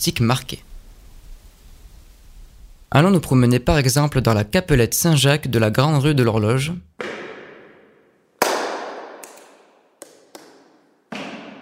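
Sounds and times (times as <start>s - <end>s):
speech: 0.0s - 0.7s, 2.9s - 7.2s
claps or knocks inside a small chapel: 8.4s - 11.6s.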